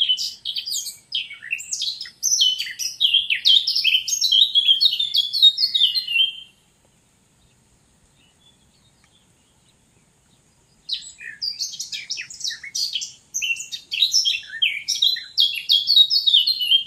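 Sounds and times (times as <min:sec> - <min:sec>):
Eurasian blackcap warbling song: 0:00.0 - 0:16.8.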